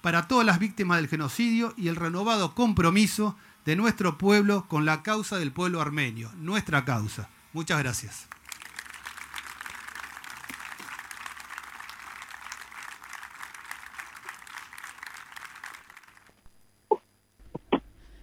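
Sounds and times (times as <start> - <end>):
speech: 0.0 - 8.4
applause at end of speech: 8.2 - 16.4.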